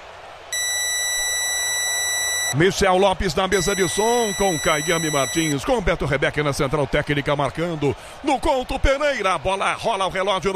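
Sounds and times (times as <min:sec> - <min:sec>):
radio station time signal beep: 0:00.6 - 0:02.6, 0:03.5 - 0:05.6
speech: 0:02.5 - 0:10.5.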